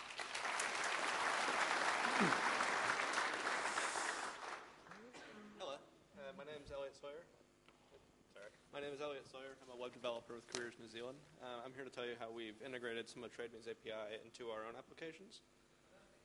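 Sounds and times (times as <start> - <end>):
audience clapping: 0.0 - 5.0
speech: 2.2 - 2.5, 8.7 - 15.6.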